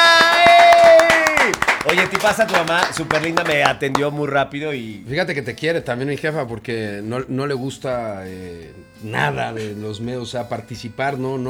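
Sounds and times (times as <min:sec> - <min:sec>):
voice holding a long sustained cheering tone: 0:00.0 - 0:04.1, 0:09.0 - 0:09.9
laughter: 0:00.0 - 0:11.4
steady rhythmic hand clapping: 0:00.0 - 0:11.4
speech: 0:02.2 - 0:11.4.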